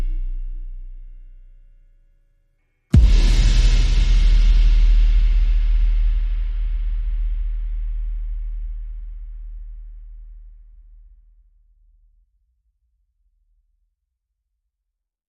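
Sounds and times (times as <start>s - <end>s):
drums: 3.0s - 8.6s.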